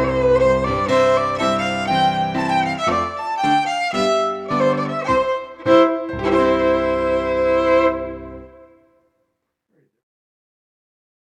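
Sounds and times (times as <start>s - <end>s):
Scottish fiddle playing a march: 0.0s - 8.9s.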